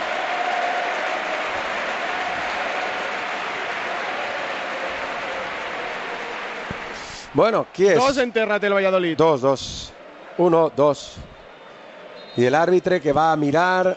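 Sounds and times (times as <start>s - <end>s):
stadium crowd ovation with applause and cheering: 0.0s - 13.9s
speech: 7.4s - 11.3s, 12.4s - 13.9s.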